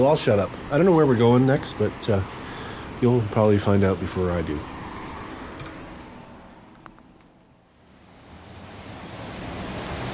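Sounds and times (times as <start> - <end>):
speech: 0.0 - 2.4, 3.0 - 4.7
rain falling outdoors: 7.9 - 10.1.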